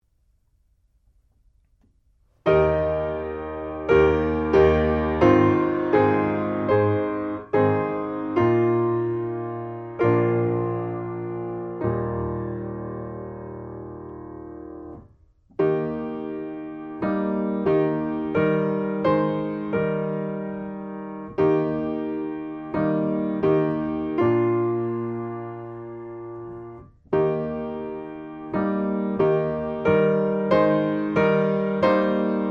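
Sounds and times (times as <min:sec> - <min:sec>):
hymn on piano: 0:02.5 - 0:32.5.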